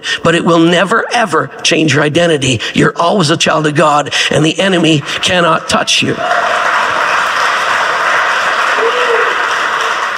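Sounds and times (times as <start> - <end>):
speech: 0.0 - 6.9
crowd applause: 5.0 - 10.1.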